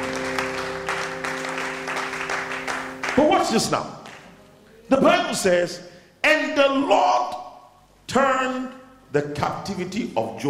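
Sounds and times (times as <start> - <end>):
crowd clapping: 0.0 - 4.4
speech: 3.2 - 4.0, 4.9 - 7.4, 8.1 - 10.4.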